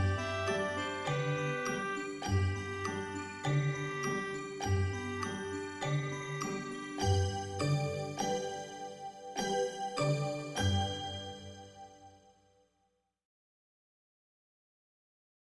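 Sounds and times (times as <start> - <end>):
instrumental music: 0.0 - 12.3.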